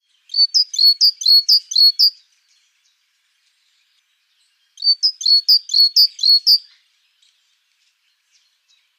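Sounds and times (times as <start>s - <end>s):
great tit singing two-note phrases: 0.0s - 2.2s, 4.2s - 7.4s.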